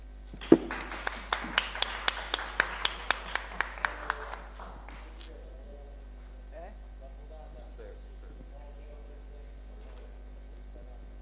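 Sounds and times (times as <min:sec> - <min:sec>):
audience applause: 0:00.4 - 0:05.3.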